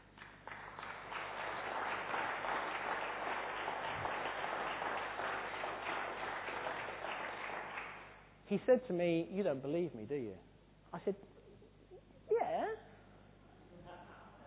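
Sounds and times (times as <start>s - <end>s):
audience applause: 0.0s - 8.1s
speech: 8.5s - 11.3s.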